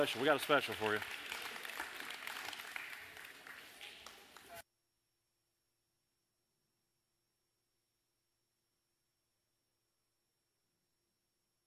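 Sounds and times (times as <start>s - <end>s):
speech: 0.0s - 1.3s
crowd applauding: 0.0s - 4.6s.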